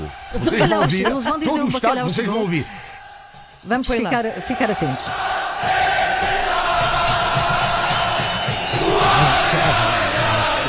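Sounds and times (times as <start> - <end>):
huge stadium crowd chanting a football slogan: 0.0 - 10.6
laughter: 0.3 - 2.6, 8.8 - 10.6
speech: 0.3 - 2.9, 3.6 - 5.8.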